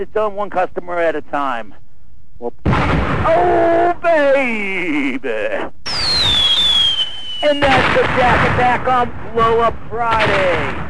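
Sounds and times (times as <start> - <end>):
speech: 0.0 - 1.8, 2.4 - 6.5, 7.4 - 10.8
firecracker blasts: 2.6 - 3.4, 5.9 - 10.8
shrill descending firework whistling tones: 5.9 - 7.6.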